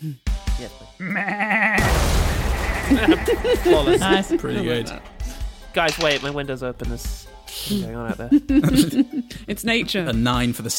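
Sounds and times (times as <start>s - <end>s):
speech: 0.0s - 1.7s, 2.9s - 5.1s, 5.8s - 10.7s
human voice imitating a ram: 1.0s - 1.9s
laughter: 1.8s - 5.3s, 7.7s - 9.4s.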